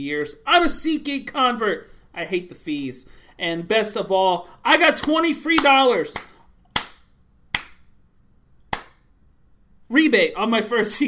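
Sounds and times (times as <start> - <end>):
speech: 0.0 - 6.3, 9.9 - 11.0
slow hand claps: 5.0 - 7.9, 8.7 - 9.1.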